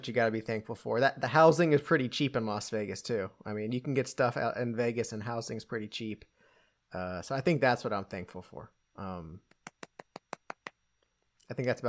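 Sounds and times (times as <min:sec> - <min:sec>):
speech: 0:00.0 - 0:06.3, 0:06.9 - 0:09.5, 0:11.5 - 0:11.8
single person clapping: 0:09.5 - 0:10.8.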